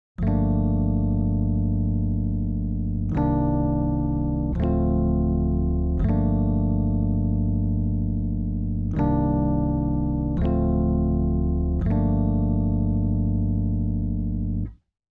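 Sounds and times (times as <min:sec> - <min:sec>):
chords: 0:00.2 - 0:14.7.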